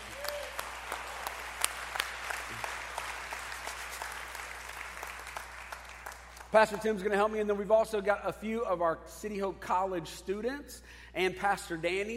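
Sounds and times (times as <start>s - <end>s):
audience applause welcoming a pastor to the platform: 0.0s - 6.5s
speech: 6.5s - 12.1s.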